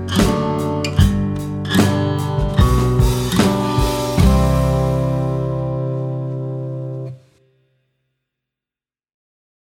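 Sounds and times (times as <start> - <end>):
chords: 0.0 - 7.2.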